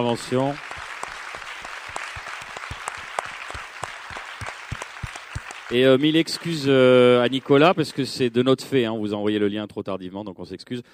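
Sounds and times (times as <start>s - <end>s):
speech: 0.0s - 0.7s, 5.7s - 10.9s
audience applause: 0.0s - 8.5s.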